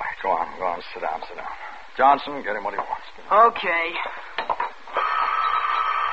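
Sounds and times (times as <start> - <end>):
speech: 0.2 - 4.1
telephone ringing: 5.0 - 6.1.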